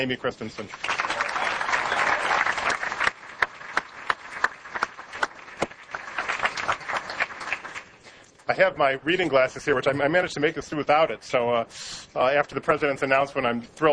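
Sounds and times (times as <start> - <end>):
speech: 0.0 - 1.0, 8.5 - 13.9
audience round of applause: 0.6 - 8.0.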